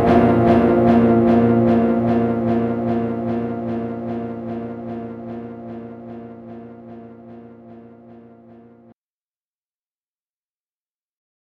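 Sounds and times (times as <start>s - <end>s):
Boss DD 200 lofi effect: 0.0s - 9.0s.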